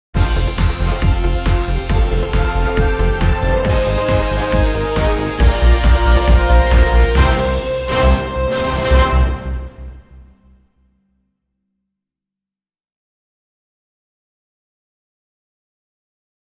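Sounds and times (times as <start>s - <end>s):
musical sting: 0.2s - 10.6s.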